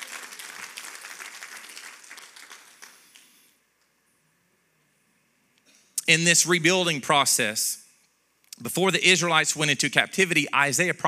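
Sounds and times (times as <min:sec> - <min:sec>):
audience clapping in praise: 0:00.0 - 0:03.5
speech: 0:06.1 - 0:07.8, 0:08.6 - 0:11.0.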